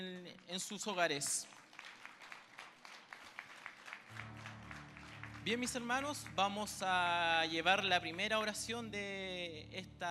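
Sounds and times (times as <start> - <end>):
speech: 0.0 - 1.6, 5.4 - 10.1
applause: 0.5 - 8.5.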